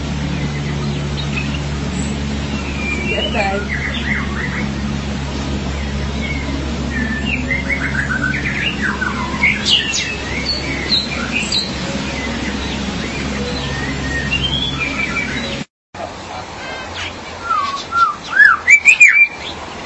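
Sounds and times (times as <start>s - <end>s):
low hum: 0.0s - 15.7s
magpie-robin or shama song: 0.2s - 5.0s, 5.6s - 15.7s, 17.0s - 19.8s.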